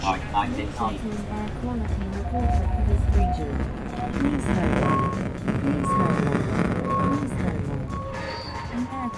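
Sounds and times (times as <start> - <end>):
steady rumble of street traffic: 0.0 - 9.1
short electronic tones from air pollution readings turned into sound: 2.5 - 9.1.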